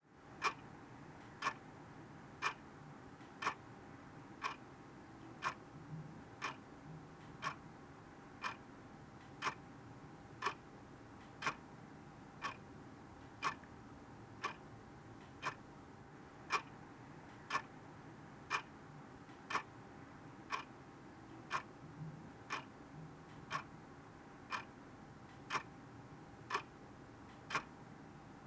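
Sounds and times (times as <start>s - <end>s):
bedside clock ticking: 0.3s - 1.7s, 2.4s - 3.7s, 4.3s - 7.7s, 8.3s - 11.7s, 12.4s - 13.8s, 14.4s - 15.7s, 16.4s - 17.8s, 18.4s - 19.8s, 20.4s - 23.8s, 24.4s - 27.8s.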